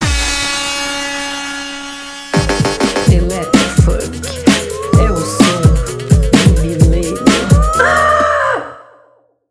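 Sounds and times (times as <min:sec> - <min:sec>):
electro funk music: 0:02.3 - 0:08.2.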